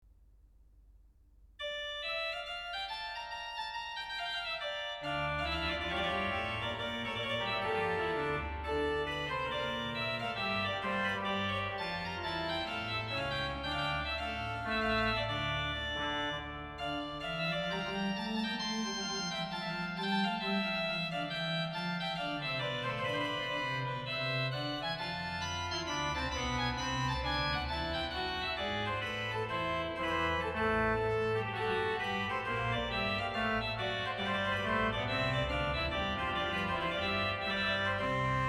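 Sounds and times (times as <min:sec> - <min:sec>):
organ duet: 0:01.6 - 0:38.4.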